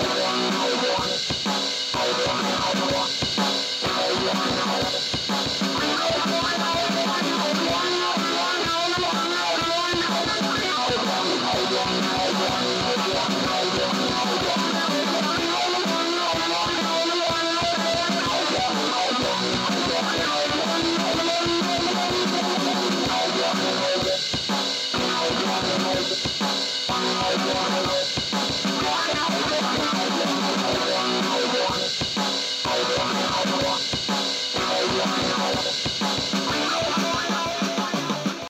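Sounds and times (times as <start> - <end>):
160 BPM music in B minor: 0.0 - 38.4.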